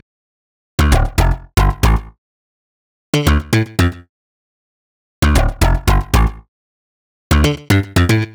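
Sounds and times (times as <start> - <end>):
slap bass in D: 0.8 - 2.2, 3.2 - 4.0, 5.2 - 6.4, 7.3 - 8.3.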